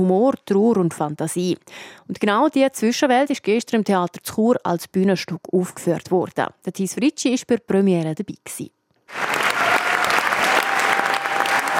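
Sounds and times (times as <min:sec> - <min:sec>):
speech: 0:00.0 - 0:09.3
theatre audience applauding after premiere: 0:09.1 - 0:11.7.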